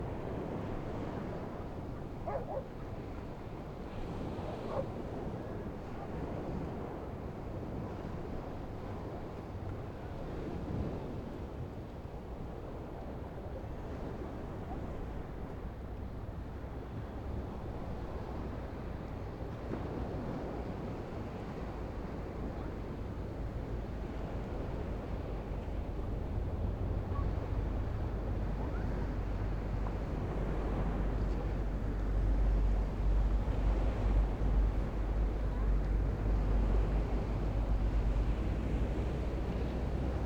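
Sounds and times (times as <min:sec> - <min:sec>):
distant calm beach surf on the coast: 0:00.0 - 0:40.2.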